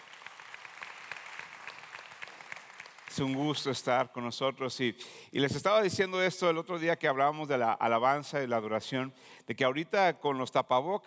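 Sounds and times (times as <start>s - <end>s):
loud audience applause: 0.0s - 3.5s
speech: 3.2s - 11.0s.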